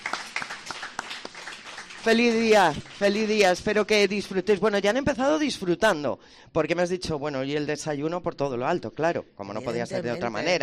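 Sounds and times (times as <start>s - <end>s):
residents clapping at a care-home celebration: 0.0s - 3.7s
speech: 2.0s - 10.6s.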